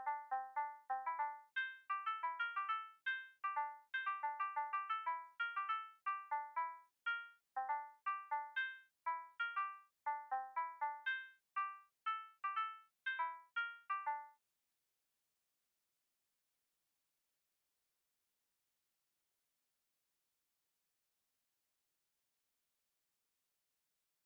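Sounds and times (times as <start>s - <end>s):
melody and rhythm: 0.0s - 14.3s.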